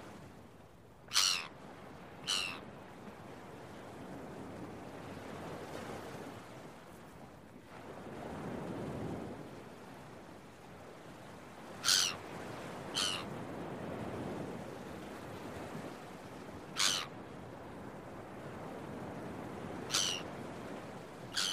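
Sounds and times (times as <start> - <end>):
gull harsh calls: 1.1 - 1.5, 2.3 - 2.6, 11.8 - 12.2, 13.0 - 13.3, 16.8 - 17.1, 19.9 - 20.2, 21.4 - 21.5
waves surging on the shore: 1.2 - 21.5.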